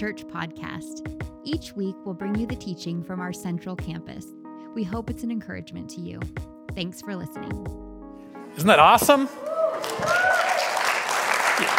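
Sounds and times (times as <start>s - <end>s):
speech: 0.0s - 7.8s, 8.6s - 10.3s
audience clapping and applauding: 9.0s - 11.7s.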